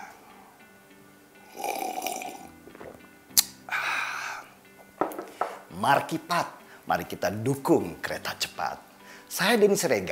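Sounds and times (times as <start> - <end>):
person slurping a sip of coffee: 1.5 - 3.0
speech: 5.4 - 10.1.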